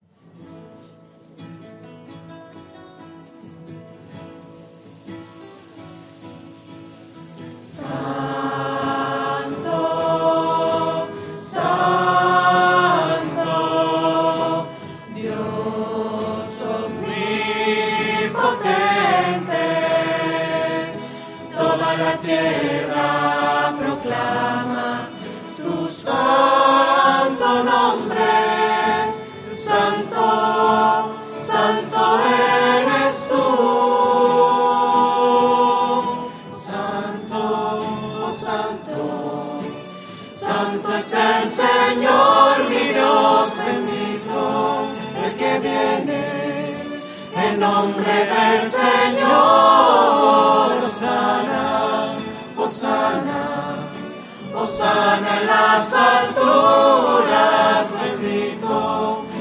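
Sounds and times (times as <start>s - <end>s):
voices singing: 7.5s - 59.3s.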